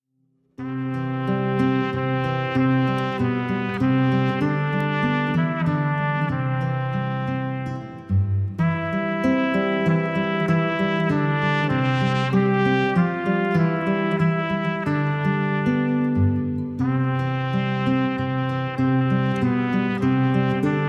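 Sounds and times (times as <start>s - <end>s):
instrumental music: 0.6s - 20.8s.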